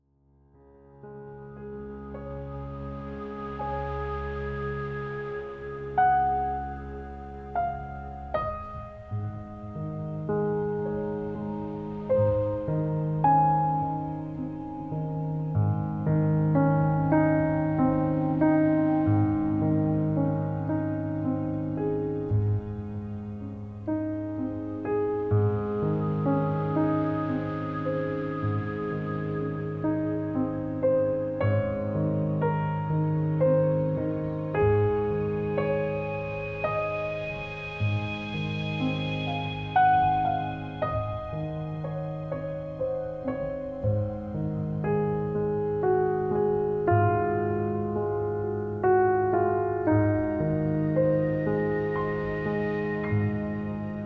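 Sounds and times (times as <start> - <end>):
instrumental music: 0.5 - 54.0.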